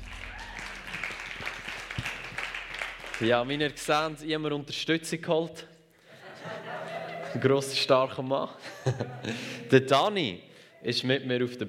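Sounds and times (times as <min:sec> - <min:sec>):
audience applauding for the band: 0:00.0 - 0:04.1
speech: 0:03.2 - 0:05.7, 0:07.3 - 0:11.6
laughter: 0:06.1 - 0:07.6, 0:08.6 - 0:09.8.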